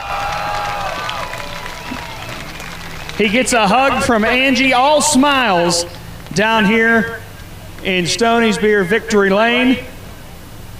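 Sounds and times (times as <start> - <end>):
crowd clapping at speedway victory lane: 0.0 - 4.0
crowd cheering at speedway victory lane: 0.0 - 9.7
speech: 3.2 - 7.2, 7.8 - 9.9.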